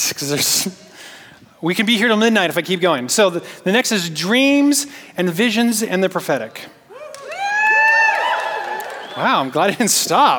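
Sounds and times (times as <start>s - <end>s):
speech: 0.1s - 0.9s, 1.6s - 6.8s, 9.2s - 10.3s
audience cheering: 7.0s - 9.8s.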